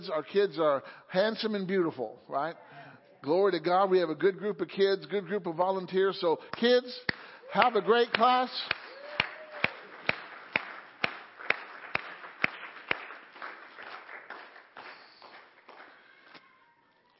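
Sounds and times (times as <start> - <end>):
speech: 0.0 - 8.8
church congregation cheering: 7.4 - 10.8, 14.8 - 17.1.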